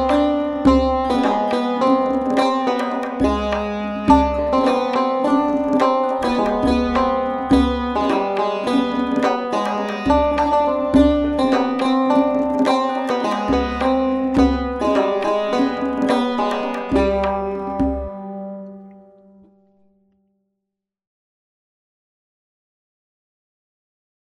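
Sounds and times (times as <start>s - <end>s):
tonbak drumming: 0.0s - 18.2s
tar playing: 0.0s - 19.8s.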